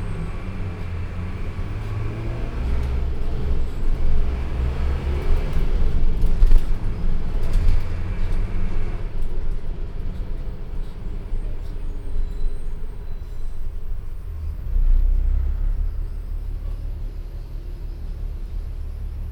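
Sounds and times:
bus interior in Brazil: 0.0 - 19.2.

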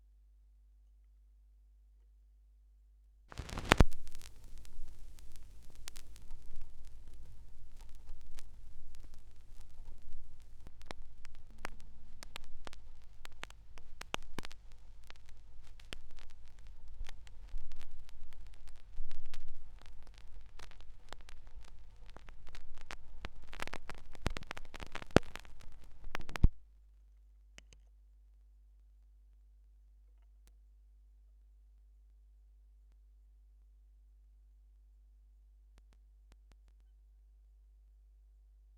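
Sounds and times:
vinyl record noise: 3.3 - 26.6.

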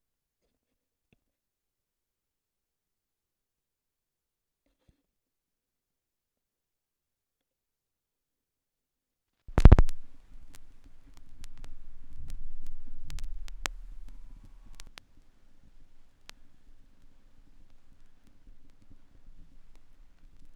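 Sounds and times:
vinyl record noise: 9.5 - 20.5.

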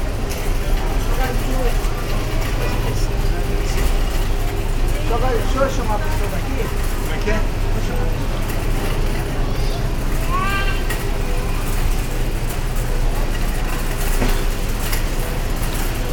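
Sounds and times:
supermarket ambience in Brazil: 0.0 - 16.1.

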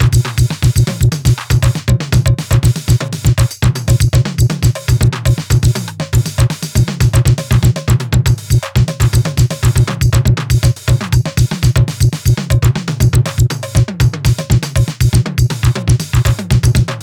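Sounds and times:
filtered drum machine beat: 0.0 - 17.0.

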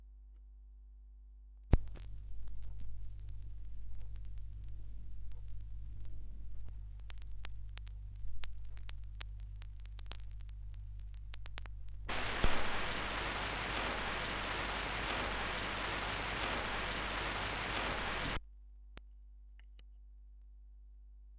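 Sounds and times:
vinyl record noise: 1.8 - 18.4.

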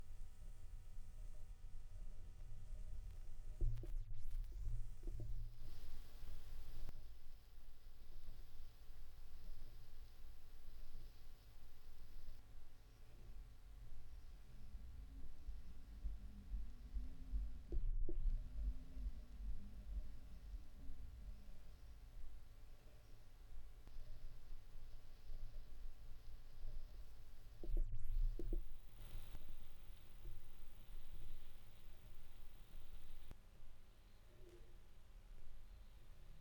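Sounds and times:
vinyl record noise: 0.0 - 33.4.

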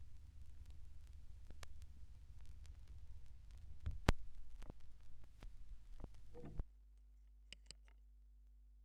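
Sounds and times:
vinyl record noise: 0.0 - 6.6.

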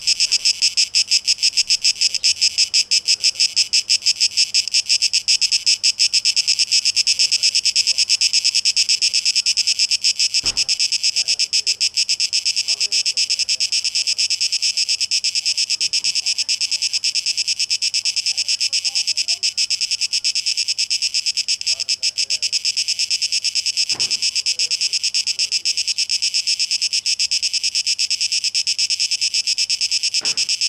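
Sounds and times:
faint chirps: 0.0 - 4.7, 8.9 - 30.6
cicadas buzzing: 0.0 - 30.6
sharp click: 10.4 - 10.9, 30.2 - 30.6.

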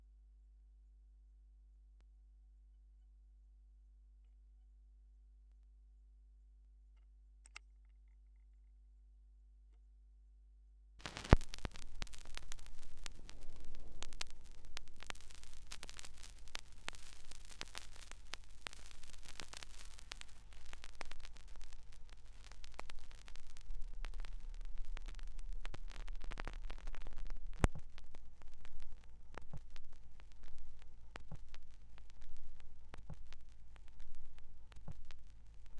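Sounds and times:
vinyl record noise: 11.0 - 35.7.

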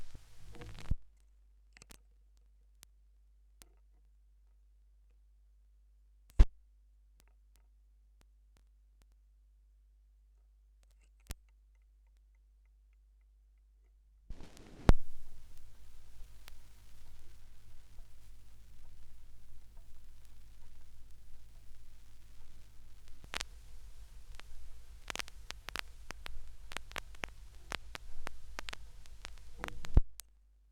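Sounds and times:
vinyl record noise: 0.0 - 1.1, 14.3 - 30.4.

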